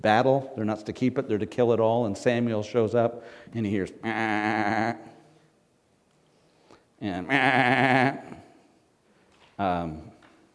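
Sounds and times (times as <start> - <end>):
speech: 0.0 - 5.1, 7.0 - 8.4, 9.6 - 10.1
sheep bleating: 7.2 - 8.4.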